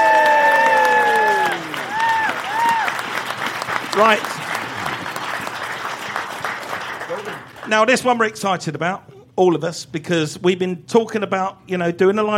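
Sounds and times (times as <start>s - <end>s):
cheers: 0.0s - 5.2s, 6.4s - 7.6s
live audience applause: 0.0s - 8.1s
speech: 4.0s - 4.3s, 7.7s - 12.3s.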